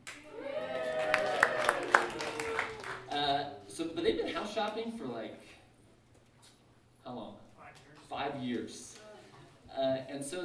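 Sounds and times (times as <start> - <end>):
audience cheering and applauding: 0.0 - 3.7
speech: 4.0 - 5.6, 8.2 - 8.9, 9.8 - 10.4.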